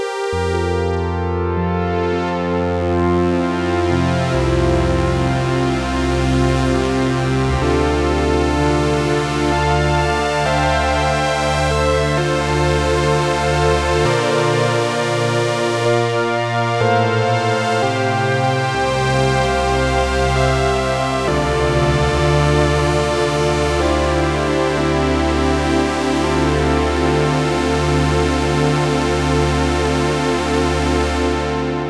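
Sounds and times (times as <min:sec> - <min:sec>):
dream synth pad: 0:00.1 - 0:31.8.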